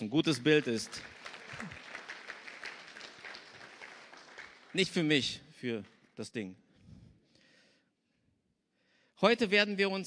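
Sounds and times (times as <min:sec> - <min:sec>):
brief audience clapping: 0:00.0 - 0:06.4
speech: 0:00.1 - 0:01.8, 0:04.7 - 0:06.6, 0:09.2 - 0:10.0.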